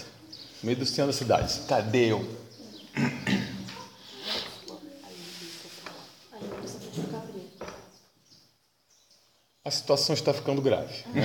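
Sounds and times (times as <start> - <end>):
speech: 0.6 - 2.4, 9.7 - 11.2
sow and piglets grunting as they go out for a walk: 2.8 - 4.0.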